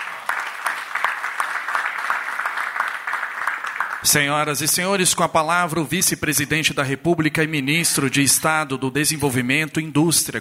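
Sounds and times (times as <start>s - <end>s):
round of applause: 0.0s - 4.3s
speech: 4.0s - 10.3s.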